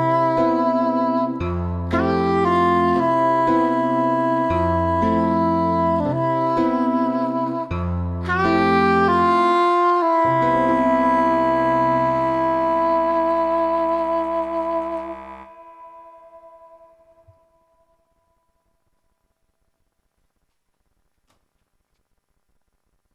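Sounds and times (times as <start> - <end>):
saxophone: 0.0 - 17.6.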